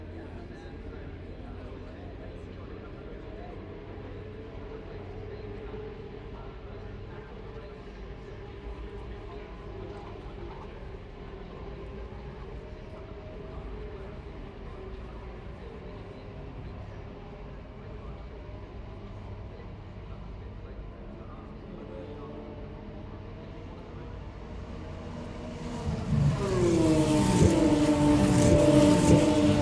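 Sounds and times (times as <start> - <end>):
Formula 3 race car engines rumbling at Silverstone: 0.0 - 29.6
murmur of voices: 0.0 - 29.6
Formula 3 race car roaring past at Silverstone: 22.1 - 29.6.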